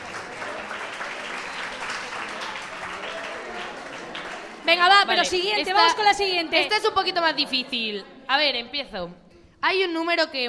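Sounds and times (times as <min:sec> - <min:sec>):
applause: 0:00.0 - 0:05.5
speech: 0:04.7 - 0:10.4.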